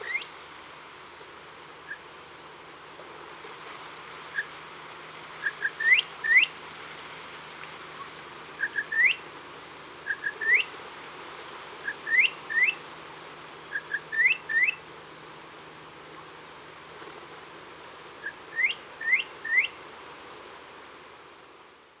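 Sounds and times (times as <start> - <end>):
bird pips and rising whistled upslurs: 0.0 - 0.3, 1.8 - 2.5, 5.4 - 6.5, 8.0 - 9.2, 10.0 - 10.7, 11.8 - 12.8, 13.7 - 14.8, 18.2 - 19.8
soft hiss: 0.0 - 21.9.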